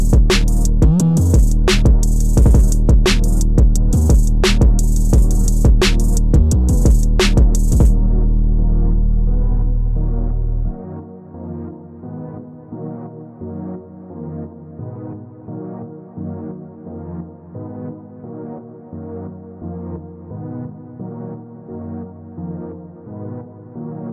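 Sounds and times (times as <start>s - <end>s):
instrumental music: 0.0s - 11.0s.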